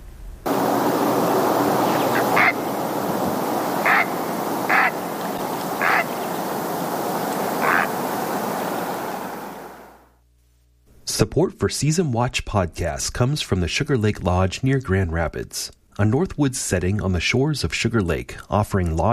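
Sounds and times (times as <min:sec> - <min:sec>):
great blue heron call: 0:00.5 - 0:09.8
speech: 0:11.2 - 0:19.1.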